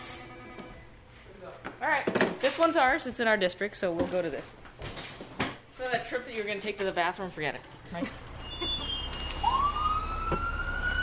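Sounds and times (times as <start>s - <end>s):
speech: 1.9s - 4.7s, 5.8s - 8.2s
fire station klaxon alarm: 8.5s - 11.0s.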